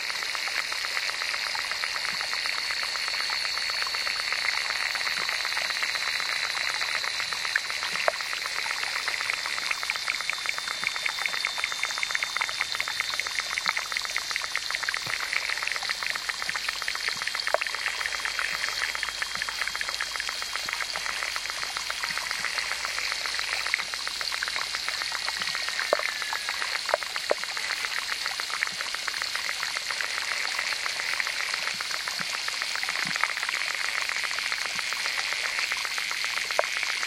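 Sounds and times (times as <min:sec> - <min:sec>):
aquatic insects crackling underwater in a small pond in Mora, New Mexico: 0:00.0 - 0:37.0
thin steady high whine from underwater pond recording: 0:00.0 - 0:37.0.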